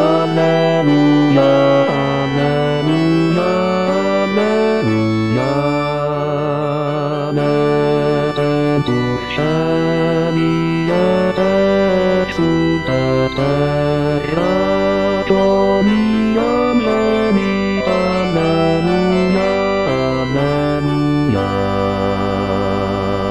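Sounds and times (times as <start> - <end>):
bass voices singing: 0.0 - 23.2.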